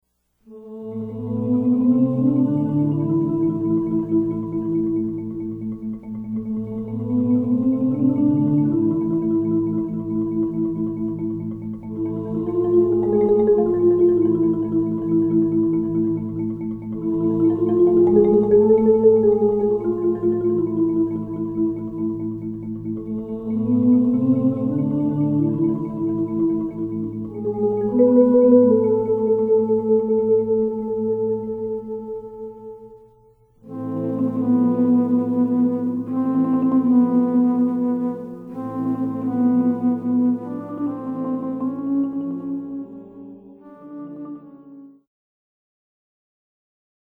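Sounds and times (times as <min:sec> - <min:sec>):
orchestra: 0:01.3 - 0:32.4, 0:33.6 - 0:44.9.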